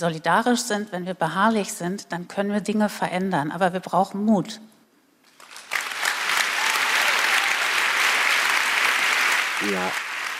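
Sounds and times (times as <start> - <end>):
speech: 0.0 - 4.7, 9.6 - 10.0
audience applause: 5.3 - 10.3.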